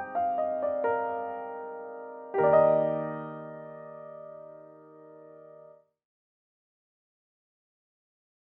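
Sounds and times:
grand piano: 0.0s - 5.8s.

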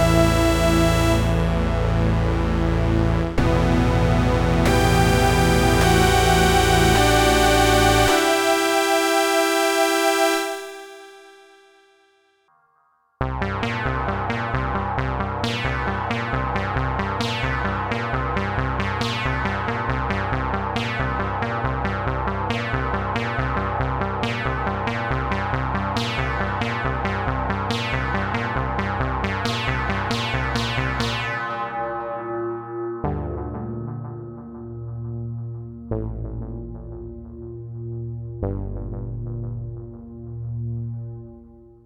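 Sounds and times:
synthesizer: 0.0s - 11.9s, 13.2s - 41.8s.

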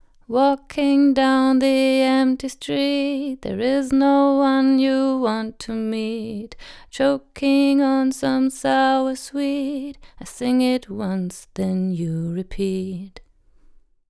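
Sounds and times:
female vocal with 4 dB peak at 10 kHz: 0.2s - 13.2s.

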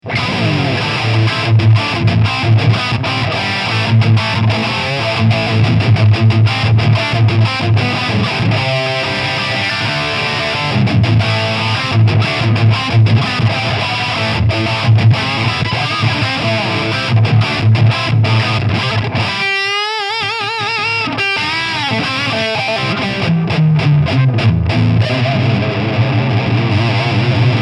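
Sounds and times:
EVH Wolfgang Standard high gain guitar: 0.0s - 27.6s.

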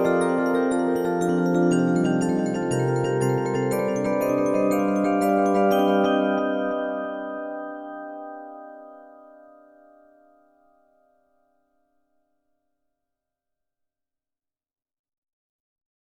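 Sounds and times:
Sequential Prophet X synthesizer: 0.0s - 10.6s.

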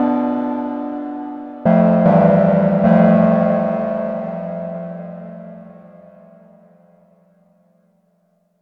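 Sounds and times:
MicroMonsta 2 synthesizer chords: 0.0s - 6.8s.

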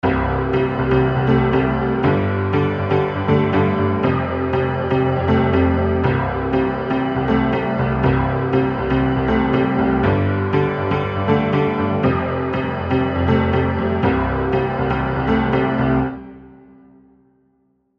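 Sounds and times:
EZkeys Grand Piano synth pop horror score: 0.0s - 17.0s.

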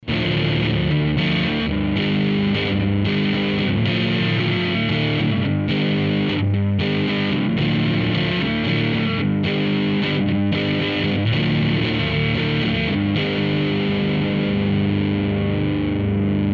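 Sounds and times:
rock guitar: 0.0s - 16.5s.

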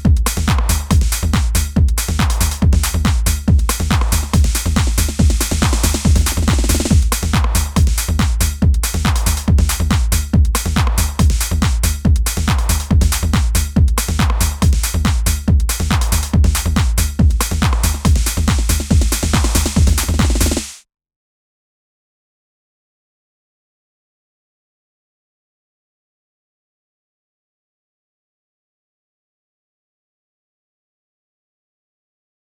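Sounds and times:
hard house happy hardcore music: 0.0s - 20.8s.

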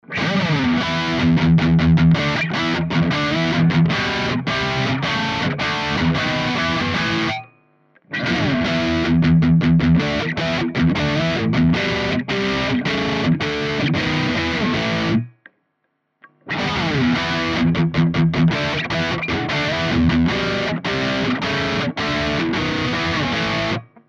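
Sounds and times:
high-gain guitar: 0.0s - 15.5s, 16.2s - 24.0s.

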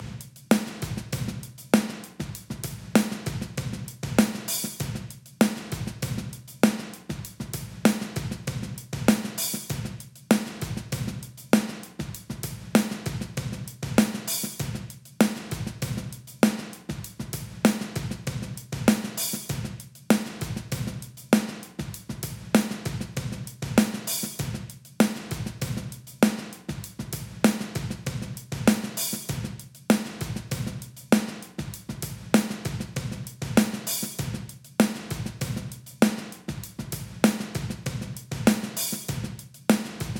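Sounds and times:
compressed kick drum: 0.0s - 0.2s, 0.8s - 1.5s, 2.2s - 5.1s, 5.8s - 6.4s, 7.1s - 10.0s, 10.6s - 11.2s, 12.0s - 14.0s, 14.6s - 14.9s, 15.5s - 16.2s, 16.9s - 19.8s, 20.4s - 21.1s, 21.8s - 23.8s, 24.4s - 24.7s, 25.3s - 26.0s, 26.7s - 29.6s, 30.2s - 30.9s, 31.6s - 34.5s, 35.1s - 35.8s, 36.5s - 39.4s
compressed snare drum: 0.0s - 40.1s.

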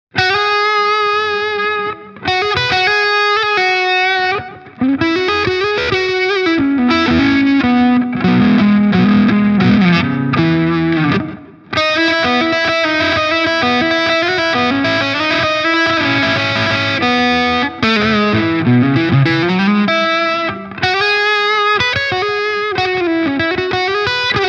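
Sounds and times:
Harley Benton HP 42 Signature distorted neck pickup guitar: 0.1s - 24.4s.

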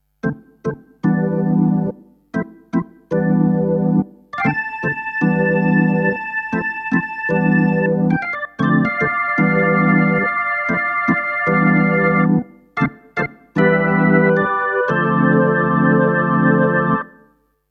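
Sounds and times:
jazz organ: 0.2s - 17.2s.

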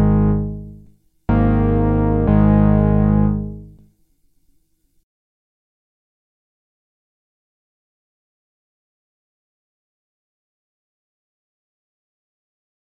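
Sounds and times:
Boss DC-2W and SDD-320 effects: 0.0s - 3.7s.

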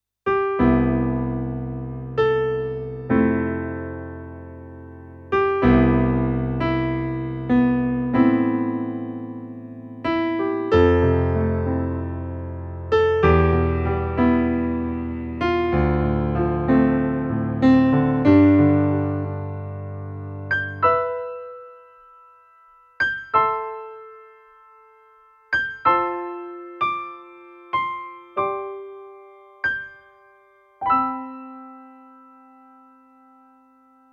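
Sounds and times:
piano: 0.2s - 34.1s.

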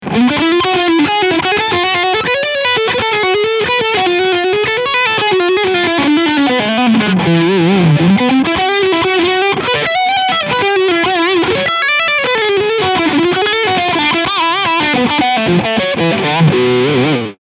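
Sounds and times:
Traveler Guitar TR VAIBRANT overdrive lick on Steg pickup: 0.0s - 17.4s.

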